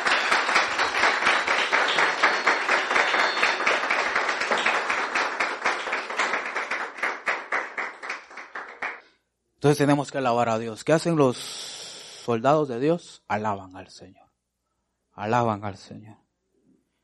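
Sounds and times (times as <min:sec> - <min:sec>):
audience applause: 0:00.0 - 0:09.0
speech: 0:09.6 - 0:11.6, 0:12.3 - 0:14.2, 0:15.2 - 0:16.2.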